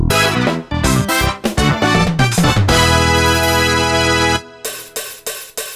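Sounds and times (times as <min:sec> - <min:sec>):
fanfare: 0:00.1 - 0:04.7.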